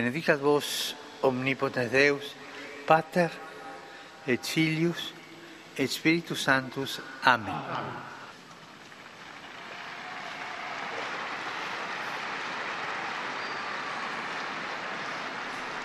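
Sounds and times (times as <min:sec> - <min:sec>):
speech: 0:00.0 - 0:03.5, 0:04.2 - 0:05.2, 0:05.8 - 0:08.1
applause from the faithful: 0:08.3 - 0:15.8.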